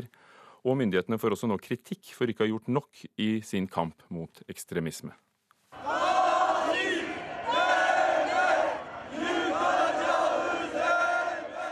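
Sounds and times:
speech: 0:00.0 - 0:06.0
crowd of demonstrators chanting: 0:05.8 - 0:11.7.

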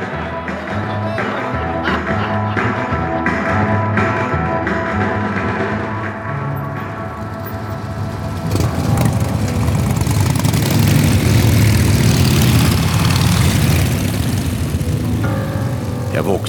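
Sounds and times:
laughter: 0:00.1 - 0:03.8
motorcycles roaring away: 0:04.9 - 0:16.4.

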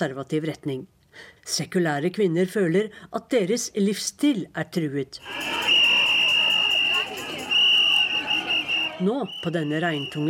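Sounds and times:
speech: 0:00.0 - 0:05.8, 0:09.0 - 0:10.2
crowd of women whistling at night: 0:05.2 - 0:10.2.

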